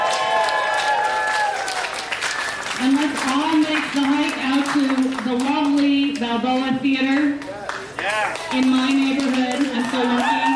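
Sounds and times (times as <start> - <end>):
audience round of applause: 0.0 - 5.1, 7.6 - 10.5
speech: 2.8 - 7.5, 8.1 - 10.5.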